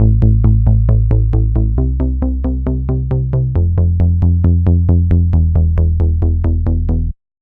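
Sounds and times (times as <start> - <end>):
bass: 0.0 - 7.4.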